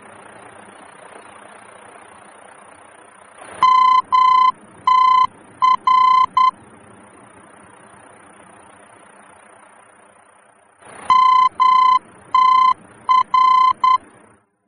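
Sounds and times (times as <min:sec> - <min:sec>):
VOR aeronautical radio beacon morse tones in Germany: 0:03.6 - 0:06.6, 0:11.1 - 0:14.0.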